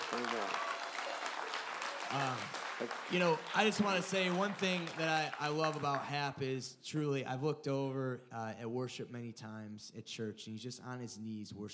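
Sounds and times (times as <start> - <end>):
audience round of applause: 0.0 - 6.2
speech: 0.1 - 0.6, 2.1 - 11.7.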